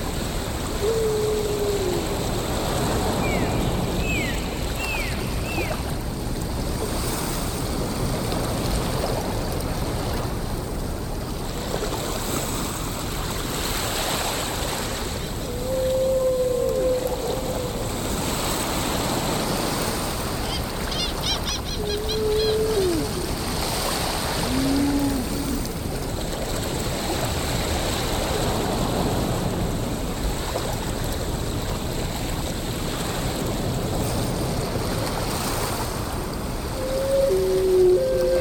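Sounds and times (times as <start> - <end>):
ocean: 0.0 - 38.4
whales: 0.6 - 5.8, 15.3 - 25.8, 36.6 - 38.4.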